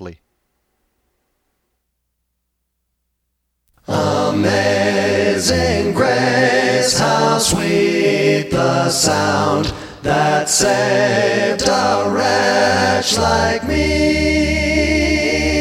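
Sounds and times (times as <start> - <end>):
English music: 3.9 - 15.6.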